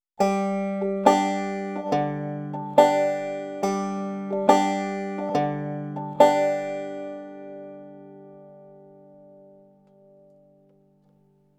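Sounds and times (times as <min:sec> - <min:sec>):
picked pattern with alternating bass: 0:00.2 - 0:08.5.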